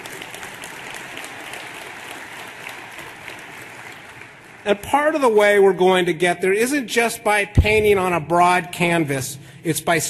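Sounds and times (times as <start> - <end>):
audience applause: 0.0 - 4.8
speech: 4.6 - 10.0.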